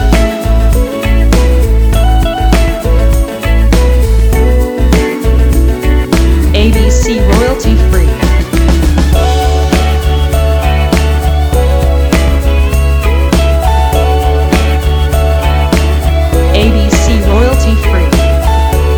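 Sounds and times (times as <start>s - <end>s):
smooth soul music: 0.0s - 18.9s.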